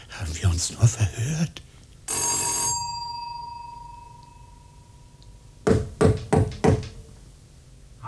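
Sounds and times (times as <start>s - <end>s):
speech: 0.2s - 1.8s
bright bell ringing: 2.1s - 5.6s
loud knocks on a door: 5.6s - 7.2s.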